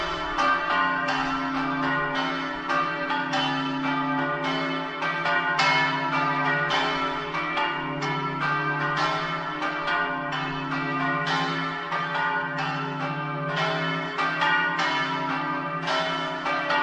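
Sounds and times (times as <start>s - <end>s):
bells ringing: 0.0s - 16.8s.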